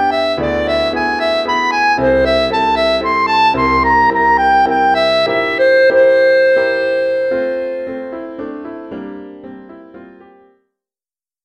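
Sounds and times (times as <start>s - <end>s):
clarinet in Bb solo: 0.0s - 9.0s.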